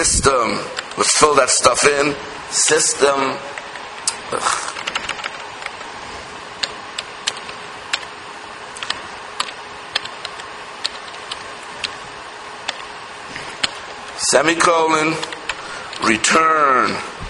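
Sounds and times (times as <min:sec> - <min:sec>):
quiet hum: 0:00.0 - 0:17.2
speech: 0:00.2 - 0:03.6, 0:04.3 - 0:04.7, 0:14.3 - 0:15.4, 0:16.0 - 0:17.1
typing on a computer keyboard: 0:03.6 - 0:05.9, 0:06.6 - 0:08.1, 0:08.8 - 0:12.0, 0:12.6 - 0:12.9, 0:13.6 - 0:13.9.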